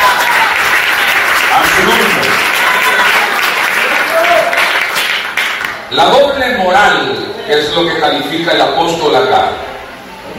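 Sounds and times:
audience applauding loudly: 0:00.0 - 0:05.9
speech: 0:06.0 - 0:09.7.

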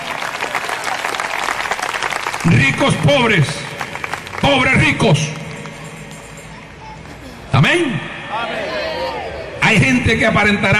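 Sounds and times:
audience applauding: 0:00.0 - 0:05.8
speech: 0:02.4 - 0:03.7, 0:04.4 - 0:05.4, 0:07.6 - 0:08.7, 0:09.7 - 0:10.7.

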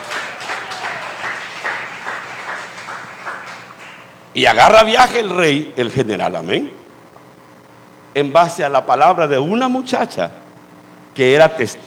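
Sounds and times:
audience clapping: 0:00.0 - 0:04.3
speech: 0:04.4 - 0:06.8, 0:08.2 - 0:10.4, 0:11.2 - 0:11.8.

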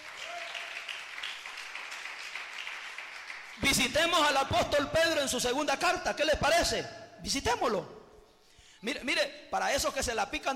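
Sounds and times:
audience applause: 0:00.0 - 0:03.6
speech: 0:03.6 - 0:08.0, 0:08.8 - 0:10.5.

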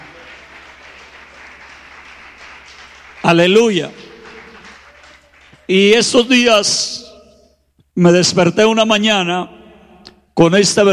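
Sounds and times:
audience applause: 0:00.0 - 0:06.2
speech: 0:03.2 - 0:04.0, 0:05.7 - 0:07.1, 0:08.0 - 0:09.6, 0:10.4 - 0:10.9.

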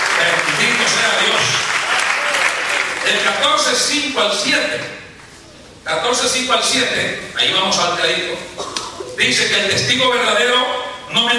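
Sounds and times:
audience applause: 0:00.0 - 0:03.4
speech: 0:03.1 - 0:05.0, 0:05.8 - 0:11.3.

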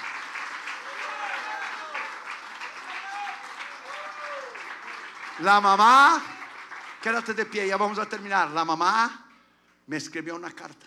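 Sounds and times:
audience applause: 0:00.0 - 0:07.9
speech: 0:05.4 - 0:06.3, 0:07.0 - 0:09.2, 0:09.9 - 0:10.8.

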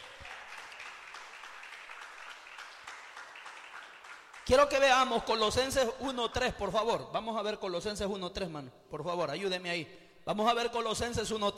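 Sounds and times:
audience applauding: 0:00.0 - 0:04.8
speech: 0:04.5 - 0:11.5.

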